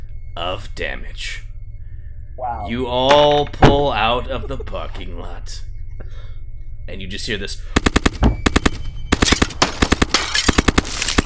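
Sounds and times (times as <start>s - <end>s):
speech: 0.4s - 1.5s, 2.4s - 6.3s, 6.9s - 8.4s
gunfire shattering car window glass: 7.8s - 11.2s.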